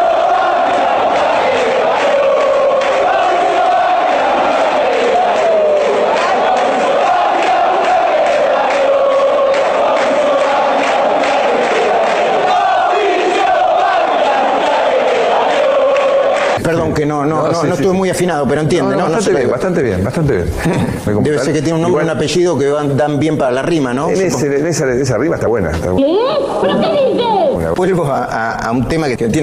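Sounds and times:
football stadium crowd chanting: 0.0 - 16.6
speech: 17.0 - 29.4.

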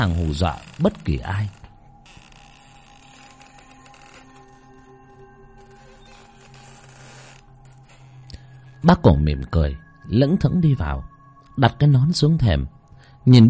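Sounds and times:
speech: 0.0 - 1.6, 8.8 - 13.4
old temple double doors creaking open: 0.0 - 8.8.

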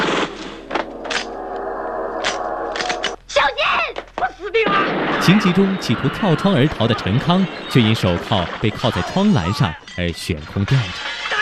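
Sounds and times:
explosions: 0.0 - 3.2, 4.6 - 8.6
gunfire: 4.6 - 6.2
speech: 5.3 - 11.0.

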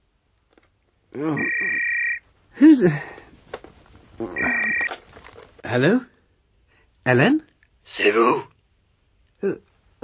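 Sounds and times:
speech: 1.2 - 1.8, 2.6 - 3.2, 5.7 - 6.1, 7.1 - 8.5, 9.4 - 9.7
telephone ringing: 1.4 - 2.2, 4.4 - 5.0.

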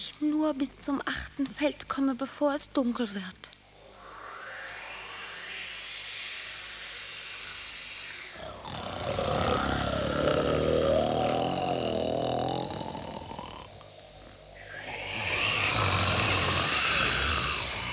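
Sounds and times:
speech: 0.0 - 3.6
sleeping king snoring in damp grass: 8.3 - 17.9.

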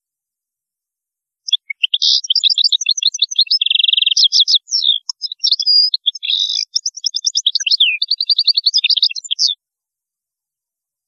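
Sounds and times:
European goldfinch singing: 1.5 - 9.6.

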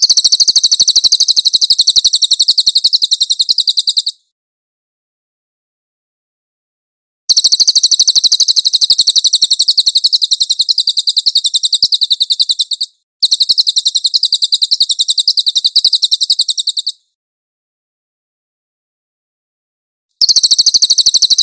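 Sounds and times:
cililin singing a high dense rattle: 0.0 - 4.3, 7.3 - 17.2, 20.2 - 21.4.

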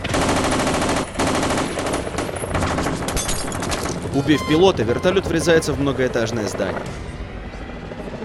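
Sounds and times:
automatic rifle firing bursts: 0.1 - 3.1
speech: 4.2 - 7.1.

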